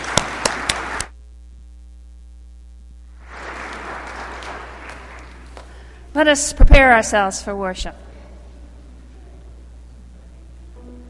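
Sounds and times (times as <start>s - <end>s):
audience applause: 0.0s - 1.1s, 3.2s - 6.0s
speech: 6.2s - 8.0s.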